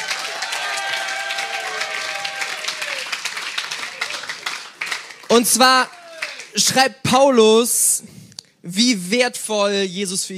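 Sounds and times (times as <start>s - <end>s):
cheers and whistles: 0.0s - 4.4s
crowd applauding: 0.0s - 6.7s
speech: 5.4s - 6.0s, 6.6s - 8.0s, 8.6s - 10.3s.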